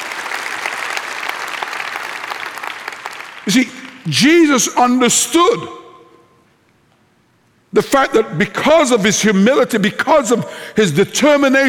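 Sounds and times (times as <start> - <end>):
audience clapping: 0.0 - 4.2
speech: 3.4 - 5.8, 7.8 - 11.6.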